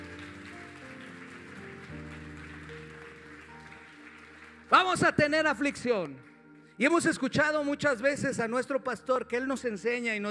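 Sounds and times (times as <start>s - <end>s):
audience applause: 0.0s - 5.1s
speech: 4.7s - 10.3s.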